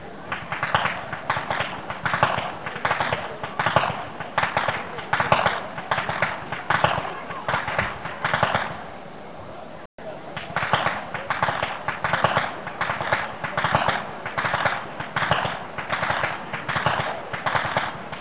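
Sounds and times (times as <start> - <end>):
youth whip cracking: 0.3 - 8.8, 10.4 - 18.1.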